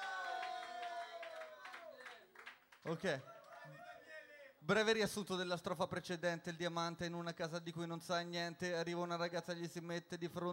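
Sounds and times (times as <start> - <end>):
audience clapping rhythmically in encouragement: 0.0 - 4.0
speech: 2.8 - 3.9, 4.6 - 10.5.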